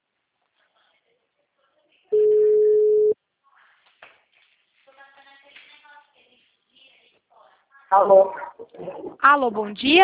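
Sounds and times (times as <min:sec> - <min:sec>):
phone call voicemail beep: 0:02.1 - 0:03.2
speech: 0:07.9 - 0:10.0.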